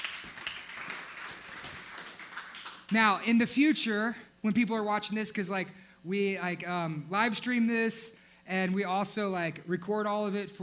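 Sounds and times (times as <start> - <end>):
audience applause: 0.0 - 2.9
speech: 2.9 - 10.6.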